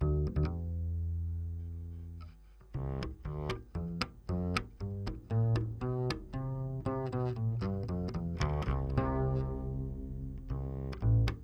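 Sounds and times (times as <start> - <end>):
bass guitar recorded by direct input: 0.0 - 11.4.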